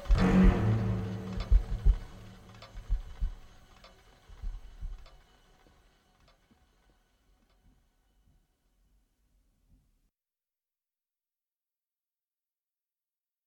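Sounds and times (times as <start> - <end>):
roar of the abyss: 0.0 - 2.6.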